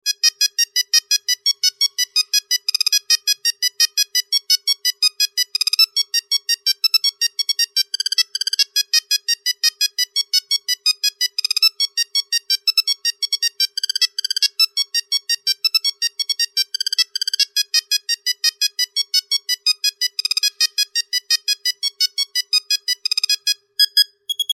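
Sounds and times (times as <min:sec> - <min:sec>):
Nokia mobile phone ringtone: 0:00.0 - 0:24.5.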